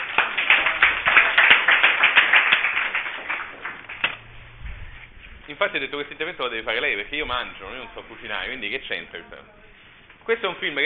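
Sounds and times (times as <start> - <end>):
crowd applause: 0.0 - 4.6
speech: 5.6 - 10.8.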